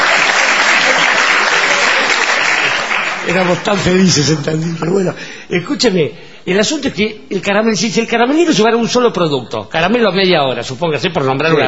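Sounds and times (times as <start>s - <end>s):
theater audience applause: 0.0s - 5.0s
speech: 3.3s - 11.6s.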